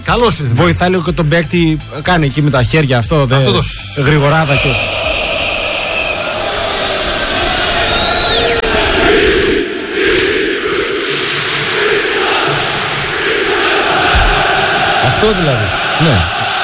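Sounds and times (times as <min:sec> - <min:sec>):
speech: 0:00.1 - 0:05.2, 0:15.2 - 0:16.4
football fans chanting to greet the players: 0:04.0 - 0:16.6.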